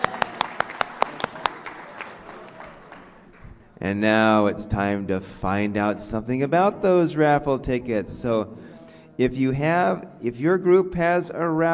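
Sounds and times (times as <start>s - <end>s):
audience clapping hands: 0.0s - 3.8s
speech: 3.8s - 11.7s.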